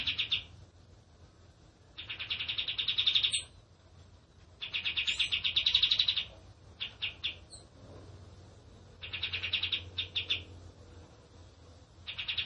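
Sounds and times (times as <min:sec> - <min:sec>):
bird chirping trills: 0:00.0 - 0:00.6, 0:01.9 - 0:03.6, 0:04.6 - 0:07.7, 0:09.0 - 0:10.6, 0:12.0 - 0:12.4.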